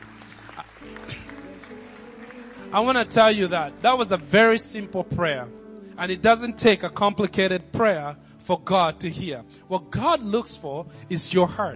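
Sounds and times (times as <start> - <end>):
audience clapping: 0.0 - 3.9
speech: 2.7 - 11.7.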